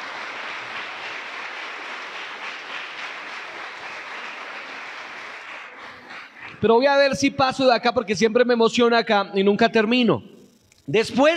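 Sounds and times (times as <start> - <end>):
crowd applause: 0.0 - 6.8
speech: 6.6 - 10.3, 10.9 - 11.3.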